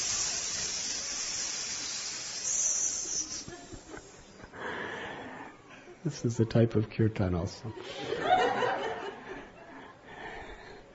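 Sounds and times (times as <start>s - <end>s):
voice imitating hissing snakes: 0.0s - 4.4s
laughter: 3.1s - 4.6s, 7.7s - 10.0s
speech: 6.0s - 8.2s.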